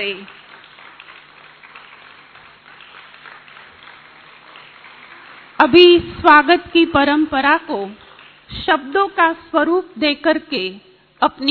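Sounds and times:
speech: 0:00.0 - 0:00.4, 0:05.6 - 0:11.4
audience applause: 0:00.2 - 0:05.6.

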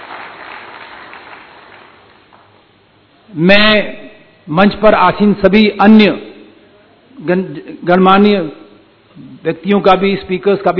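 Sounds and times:
loud audience applause: 0:00.0 - 0:02.5
speech: 0:03.3 - 0:06.2, 0:07.2 - 0:08.6, 0:09.2 - 0:10.7.

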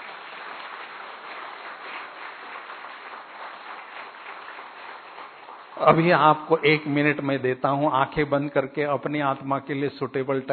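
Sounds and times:
audience clapping: 0:00.0 - 0:07.4
speech: 0:05.8 - 0:10.5.

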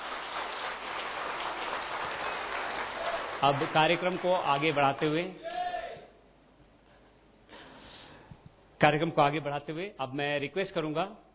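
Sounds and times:
crowd applauding: 0:00.0 - 0:05.8
speech: 0:03.4 - 0:05.4, 0:08.8 - 0:11.3.

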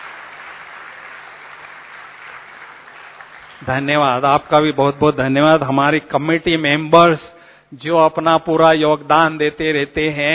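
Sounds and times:
audience applause: 0:00.0 - 0:03.8
speech: 0:03.6 - 0:10.3.

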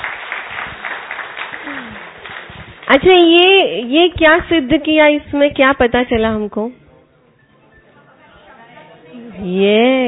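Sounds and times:
audience clapping for themselves: 0:00.0 - 0:02.9
speech: 0:02.9 - 0:06.8, 0:09.6 - 0:10.0.

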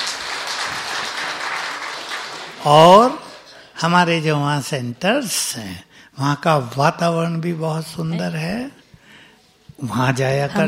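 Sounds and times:
audience clapping at a talk: 0:00.0 - 0:03.6
speech: 0:02.6 - 0:03.2, 0:03.8 - 0:08.8, 0:09.8 - 0:10.6.

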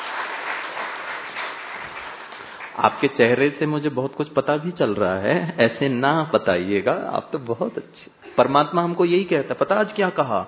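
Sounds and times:
audience at a spiritual talk clapping: 0:00.0 - 0:03.2
speech: 0:02.8 - 0:10.4.

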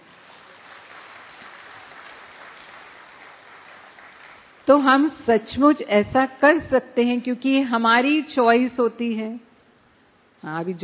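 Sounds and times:
audience clapping: 0:00.0 - 0:04.7
speech: 0:04.7 - 0:09.5, 0:10.4 - 0:10.8.

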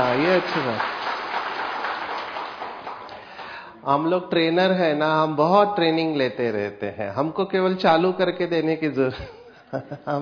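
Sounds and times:
speech: 0:00.0 - 0:01.0, 0:03.8 - 0:10.1
audience clapping in a training session: 0:00.0 - 0:03.7.

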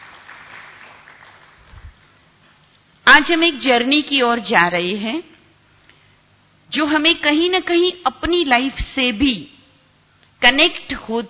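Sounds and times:
audience applause: 0:00.0 - 0:02.0
speech: 0:03.1 - 0:05.3, 0:06.7 - 0:09.6, 0:10.4 - 0:11.2.

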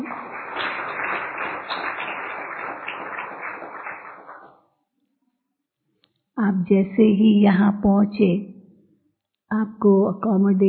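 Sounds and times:
audience applause: 0:00.0 - 0:04.5
speech: 0:06.4 - 0:08.5, 0:09.5 - 0:10.6.

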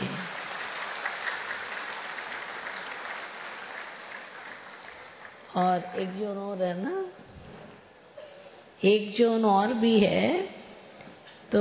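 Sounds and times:
crowd audience clapping: 0:00.0 - 0:06.1
speech: 0:05.5 - 0:07.3, 0:08.8 - 0:10.5.

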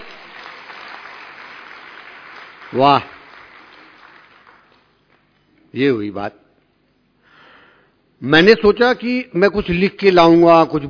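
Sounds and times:
audience applause: 0:00.0 - 0:04.9
speech: 0:02.7 - 0:03.2, 0:05.7 - 0:06.4, 0:08.2 - 0:10.8.

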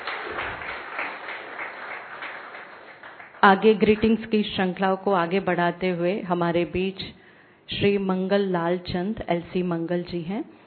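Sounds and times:
audience applause: 0:00.0 - 0:04.1
speech: 0:03.4 - 0:10.6.

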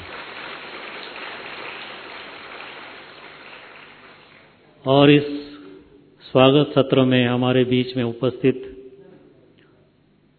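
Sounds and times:
audience applause: 0:00.0 - 0:04.6
speech: 0:04.8 - 0:05.5, 0:06.3 - 0:08.8.

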